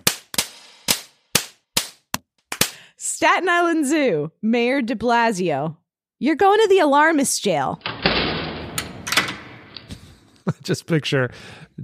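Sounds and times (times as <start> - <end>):
slap sound effects: 0.0 - 2.8
speech: 3.1 - 7.9, 10.6 - 11.8.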